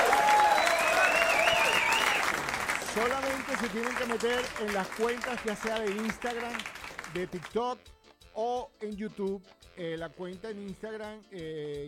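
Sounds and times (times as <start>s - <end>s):
audience applause in a food competition: 0.0s - 7.5s
speech: 3.0s - 11.8s.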